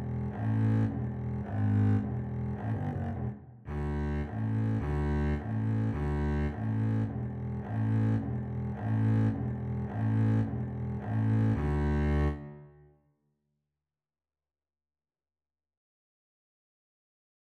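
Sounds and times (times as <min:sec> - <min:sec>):
double bass duet: 0:00.0 - 0:12.6.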